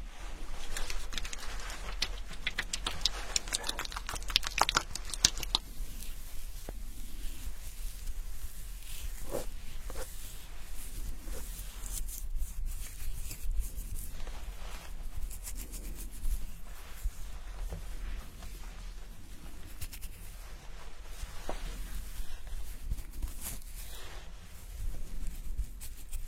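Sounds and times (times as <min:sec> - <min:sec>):
scalp massage rubbing and fizzing during hair wash: 0:00.2 - 0:26.2.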